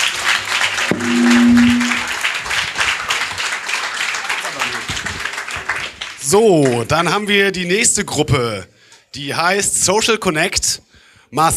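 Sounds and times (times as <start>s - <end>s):
audience applause: 0.0s - 6.8s
speech: 6.3s - 11.5s.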